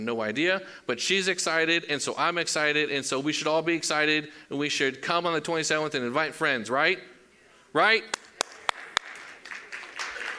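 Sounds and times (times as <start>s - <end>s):
speech: 0.0s - 7.1s, 7.7s - 8.2s
audience clapping: 8.1s - 10.3s.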